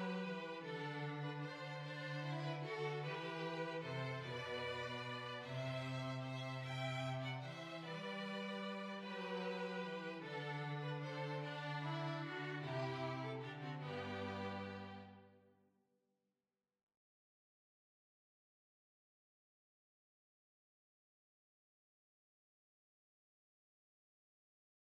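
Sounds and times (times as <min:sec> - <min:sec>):
waltz music: 0:00.0 - 0:15.2.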